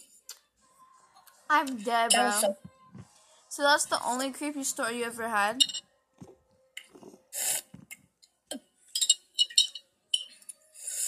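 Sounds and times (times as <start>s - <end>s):
speech: 1.5s - 2.7s, 3.6s - 5.8s
person slurping pickle juice: 6.8s - 8.0s.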